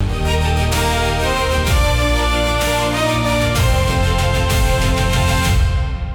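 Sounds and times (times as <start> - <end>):
music loop: 0.0 - 6.0.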